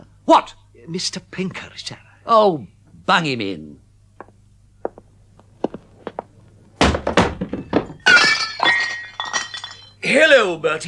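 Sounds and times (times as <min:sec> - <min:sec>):
speech: 0:00.3 - 0:03.8, 0:10.1 - 0:10.8
soft knocks: 0:04.2 - 0:07.9
empty drinking glass toppling and smashing: 0:07.6 - 0:10.0
broken glass tinkling as it settles: 0:07.8 - 0:10.0.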